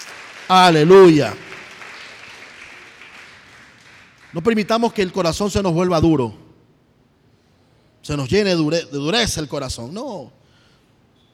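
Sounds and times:
audience applause: 0.0s - 4.5s
speech: 0.5s - 1.4s, 4.4s - 6.4s, 8.0s - 10.4s.

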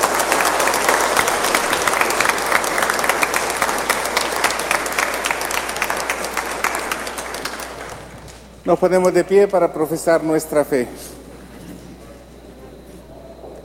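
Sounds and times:
audience applause: 0.0s - 8.6s
speech: 8.7s - 11.2s.

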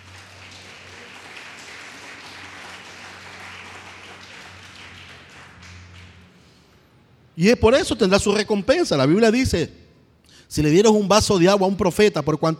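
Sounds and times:
crowd applauding: 0.0s - 6.8s
speech: 7.4s - 9.8s, 10.5s - 12.5s.

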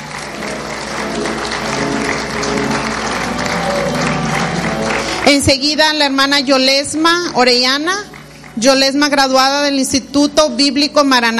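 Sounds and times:
audience applause: 0.0s - 6.2s, 8.1s - 8.6s
speech: 5.3s - 11.3s.

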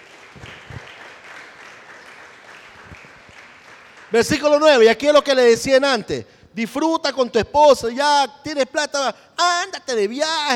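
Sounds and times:
congregation applauding during a church service: 0.0s - 5.7s
speech: 4.1s - 10.5s.

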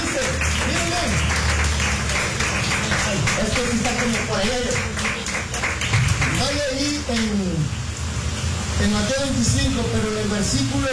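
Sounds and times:
audience applauding loudly: 0.0s - 7.5s
speech: 4.0s - 5.0s, 8.8s - 10.9s.

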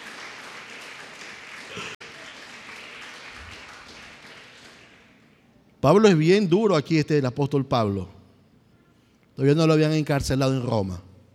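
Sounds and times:
audience applauding: 0.0s - 5.2s
speech: 5.8s - 8.2s, 9.4s - 11.1s.

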